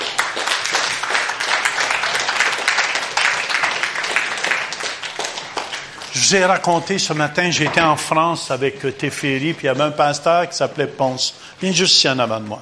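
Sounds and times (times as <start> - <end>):
crowd applause: 0.0 - 7.7
speech: 6.2 - 12.6.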